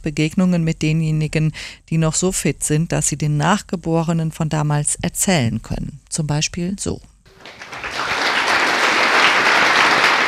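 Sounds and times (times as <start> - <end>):
speech: 0.0 - 8.1
audience applause in school auditorium: 7.3 - 10.2.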